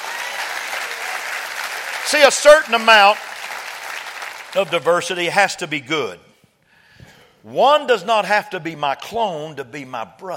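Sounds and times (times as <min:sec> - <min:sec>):
crowd of people clapping hands: 0:00.0 - 0:05.2
speech: 0:02.1 - 0:03.3, 0:04.5 - 0:06.3, 0:07.4 - 0:10.3.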